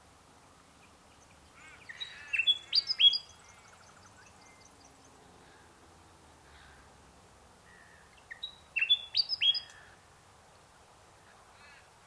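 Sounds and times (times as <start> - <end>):
unidentified bird chirping in mangroves: 0.8 - 5.2, 7.7 - 9.8.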